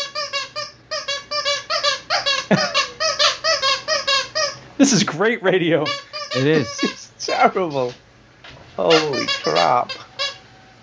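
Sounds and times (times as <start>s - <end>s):
dog's squeaky toy squeaking: 0.0s - 4.6s, 5.8s - 7.9s, 8.8s - 10.5s
speech: 2.5s - 2.8s, 4.8s - 8.0s, 8.8s - 10.0s.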